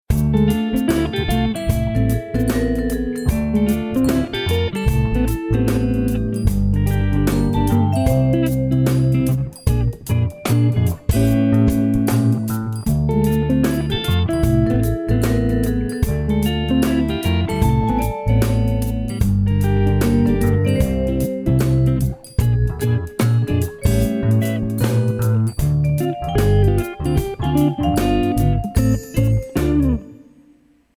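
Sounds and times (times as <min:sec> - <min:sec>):
jazz music: 0:00.1 - 0:30.5.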